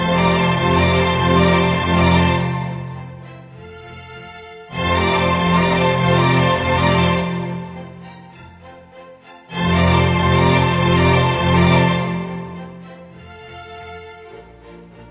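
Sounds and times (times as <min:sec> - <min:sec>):
polka music: 0:00.0 - 0:03.8, 0:04.7 - 0:08.9, 0:09.5 - 0:13.5.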